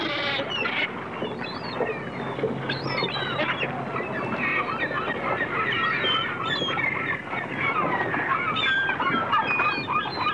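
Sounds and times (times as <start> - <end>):
gulls squealing and yelping in a dense chorus: 0.0 - 10.3.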